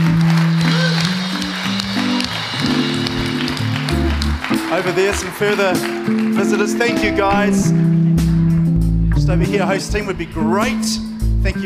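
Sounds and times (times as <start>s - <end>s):
church congregation clapping to welcome visitors: 0.0s - 7.9s
sustained musical tones: 0.0s - 10.6s
speech: 4.8s - 8.0s, 9.3s - 11.6s.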